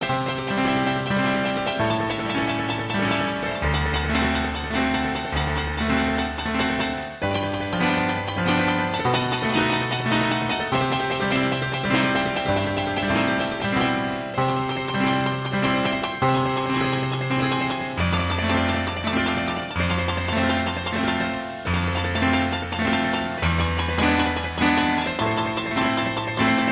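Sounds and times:
saloon piano music: 0.0 - 26.7.

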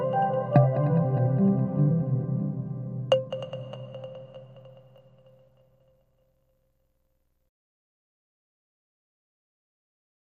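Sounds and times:
rhythm: 0.0 - 5.0.

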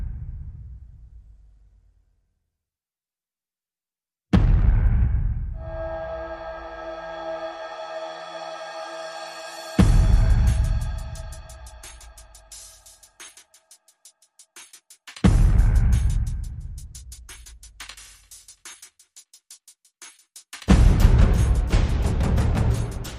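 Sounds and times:
percussion: 4.4 - 23.1
sound effects: 5.6 - 12.2.

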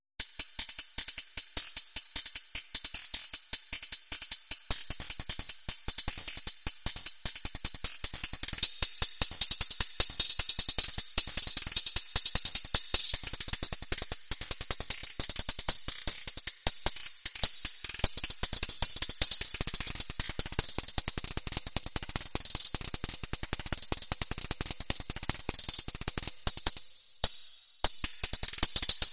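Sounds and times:
hi-hat underscore: 0.2 - 29.1.

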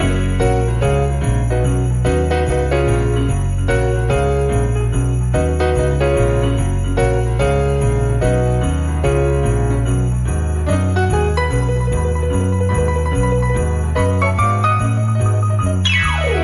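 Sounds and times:
piano: 0.0 - 16.4
sleigh bells: 0.0 - 16.4.

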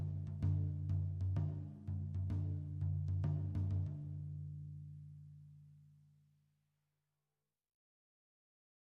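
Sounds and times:
tom drum groove: 0.0 - 4.1.

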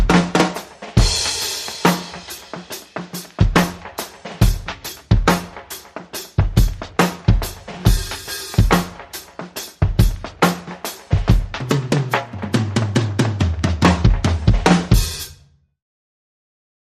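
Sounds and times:
drum groove: 0.0 - 15.4
percussion: 0.0 - 15.4.

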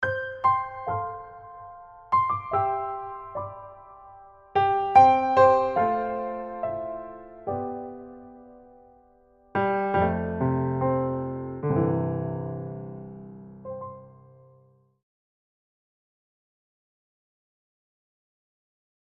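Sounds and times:
introspective piano etude: 0.0 - 14.9.

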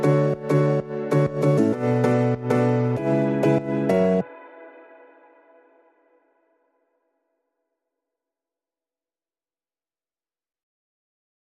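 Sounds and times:
solo piano: 0.0 - 4.2.

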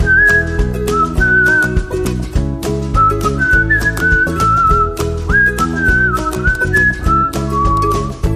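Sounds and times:
intro whistling: 0.0 - 1.9, 3.0 - 8.2.

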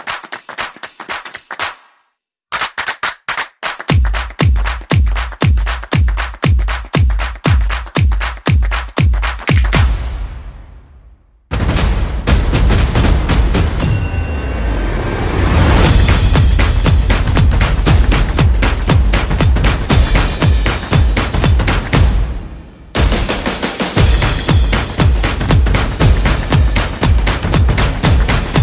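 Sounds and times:
percussion: 0.0 - 28.6
sound effects: 11.5 - 21.0.

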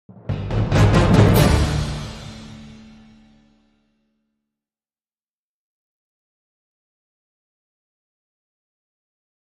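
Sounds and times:
dramatic spear music sting: 0.1 - 3.6.

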